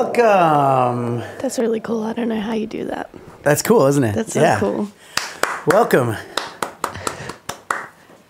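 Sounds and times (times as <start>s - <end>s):
speech: 0.2s - 6.3s
single loud hand clap: 5.1s - 8.2s.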